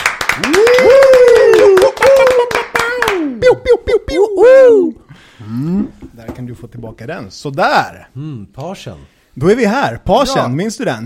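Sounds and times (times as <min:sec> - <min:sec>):
audience applause: 0:00.0 - 0:03.4
person cheering and whooping: 0:00.4 - 0:05.1
speech: 0:06.4 - 0:11.0.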